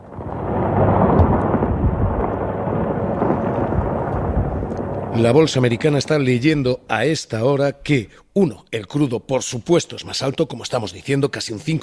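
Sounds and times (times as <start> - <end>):
missile strikes rumbling in wartime: 0.0 - 6.5
speech: 5.2 - 11.8.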